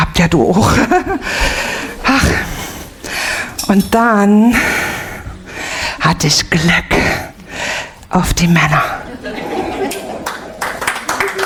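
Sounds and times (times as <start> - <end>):
speech: 0.2 - 2.4, 3.7 - 4.8, 6.0 - 7.2, 8.1 - 9.6
laughter: 0.5 - 3.2, 8.8 - 11.4
audience clapping: 9.1 - 11.4.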